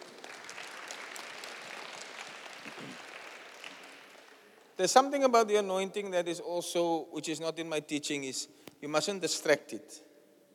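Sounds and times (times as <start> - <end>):
crowd applause: 0.0 - 4.7
speech: 4.8 - 10.1.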